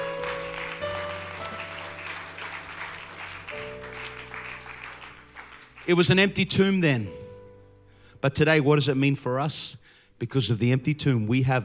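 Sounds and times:
audience clapping hands: 0.0s - 6.7s
speech: 5.8s - 7.2s, 8.2s - 11.6s.

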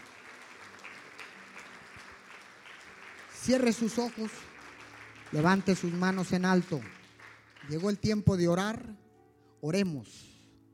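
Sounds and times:
audience applause: 0.0s - 8.2s
speech: 3.4s - 4.6s, 5.3s - 7.0s, 7.7s - 9.0s, 9.6s - 10.3s.

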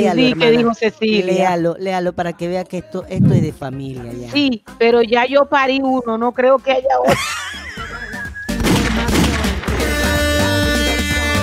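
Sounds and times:
speech: 0.0s - 7.6s
steady tonal music-like background: 0.0s - 11.0s
laughter: 7.1s - 9.2s
rapid gunshot sound effect: 8.6s - 9.8s.

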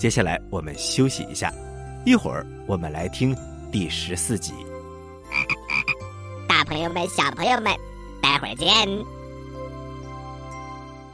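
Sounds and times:
speech: 0.0s - 4.7s, 6.5s - 9.2s
frog croaking: 5.3s - 8.5s.

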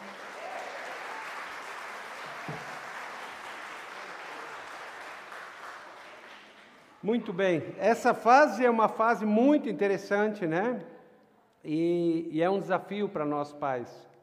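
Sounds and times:
audience applause: 0.0s - 7.0s
speech: 7.0s - 10.9s, 11.6s - 14.1s.

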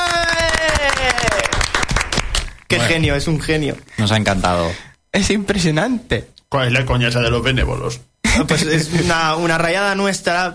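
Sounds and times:
person calling out a long falling whoop: 0.0s - 1.6s
applause from a small crowd: 0.0s - 2.5s
speech: 2.7s - 10.5s.

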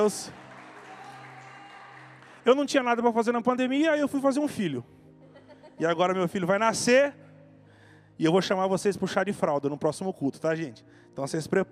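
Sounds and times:
speech: 0.0s - 0.4s, 2.4s - 5.0s, 5.8s - 7.2s, 8.2s - 11.7s
audience applause: 0.0s - 2.5s.

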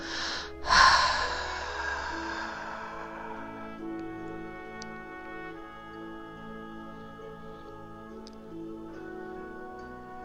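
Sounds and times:
deep exhale through the mouth: 0.0s - 3.9s
soft musical drone: 0.0s - 10.2s.

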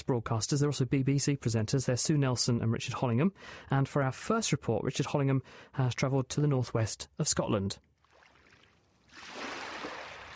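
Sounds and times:
speech: 0.0s - 7.9s
waves lapping the beach: 8.1s - 10.3s.

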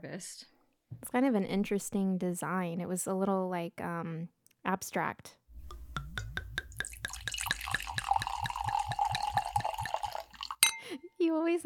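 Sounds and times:
speech: 0.0s - 5.4s, 11.3s - 11.6s
2016 Temecula late-harvest wine pouring from a bottle into a glass: 5.6s - 10.8s.

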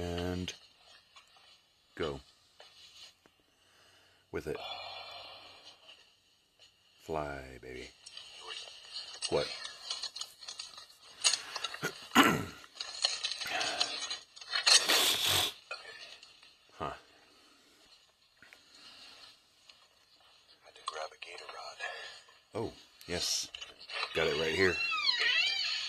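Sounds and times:
rustling: 0.0s - 4.2s, 7.8s - 25.8s
speech: 2.0s - 2.3s, 4.4s - 4.8s, 7.1s - 8.2s, 9.3s - 9.6s
squeaks: 24.0s - 25.8s
door hinge creaking: 24.7s - 25.8s.

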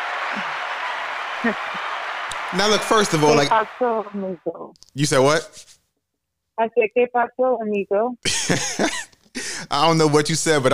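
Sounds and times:
clapping: 0.0s - 4.0s
speech: 1.4s - 1.8s, 2.5s - 5.7s, 6.6s - 10.7s
laughter: 2.3s - 4.2s, 8.3s - 10.7s.

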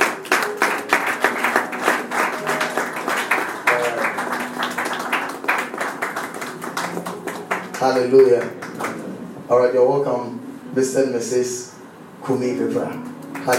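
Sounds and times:
church wedding congregation applauding the bride and groom: 0.0s - 9.2s, 12.9s - 13.5s
speech: 7.8s - 8.6s, 9.5s - 11.7s, 12.3s - 13.5s.

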